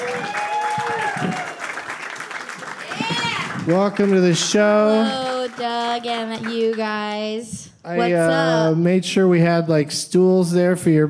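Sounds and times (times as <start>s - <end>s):
audience applause welcoming guests onto a stage: 0.0s - 7.0s
speech: 3.7s - 11.0s.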